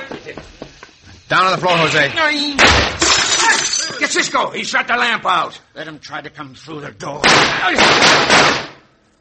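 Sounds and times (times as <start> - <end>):
speech: 1.3 - 3.0, 4.0 - 8.7
gunshots in a shootout: 2.6 - 3.1, 7.2 - 8.9.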